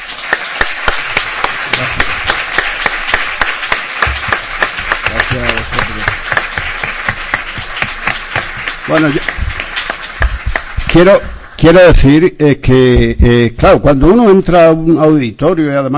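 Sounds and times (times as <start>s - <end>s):
audience applause: 0.0s - 12.1s
speech: 8.9s - 9.4s, 10.9s - 15.9s.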